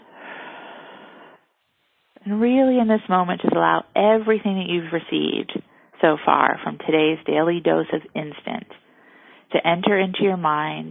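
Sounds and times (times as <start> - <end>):
deep breath in and out: 0.0 - 1.6, 5.6 - 6.0, 8.8 - 9.5
speech: 2.2 - 8.8, 9.5 - 10.8.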